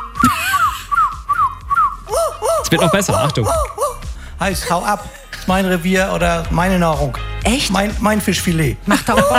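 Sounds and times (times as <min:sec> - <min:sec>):
laughter: 0:00.2 - 0:00.9, 0:02.4 - 0:03.9, 0:08.9 - 0:09.3
man imitating seagull cries: 0:02.1 - 0:04.1
speech: 0:02.7 - 0:03.8, 0:04.4 - 0:09.3.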